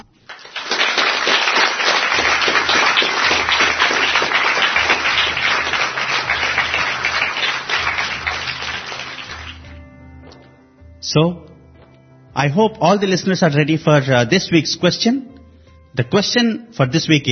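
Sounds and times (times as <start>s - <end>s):
crowd applauding: 0.0s - 9.8s
speech: 11.1s - 11.4s, 12.4s - 15.3s, 15.9s - 17.2s.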